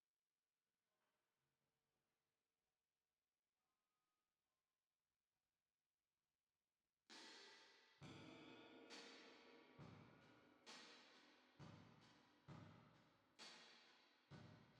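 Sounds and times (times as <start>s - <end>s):
drums with reverb: 7.1s - 14.7s.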